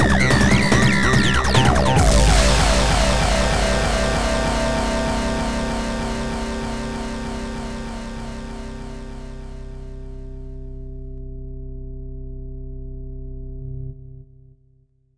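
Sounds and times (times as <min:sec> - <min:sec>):
techno music: 0:00.0 - 0:10.5.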